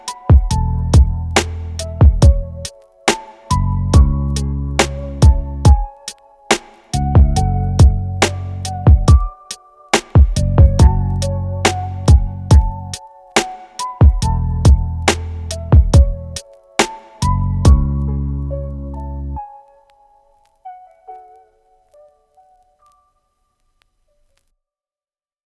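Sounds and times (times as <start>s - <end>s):
lofi beat: 0.0s - 18.1s.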